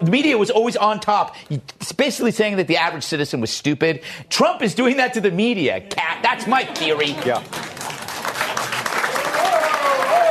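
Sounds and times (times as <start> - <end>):
speech: 0.0 - 7.8
audience applause: 6.5 - 10.2.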